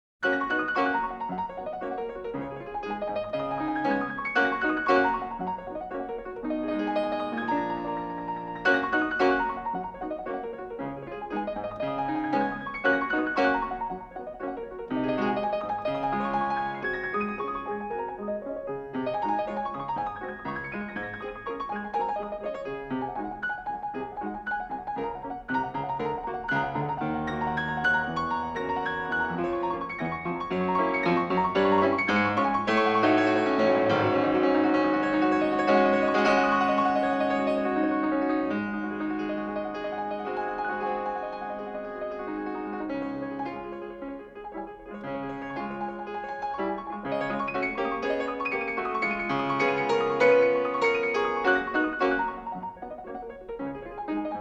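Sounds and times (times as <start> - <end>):
piano etude in G-flat major: 0.2 - 54.3.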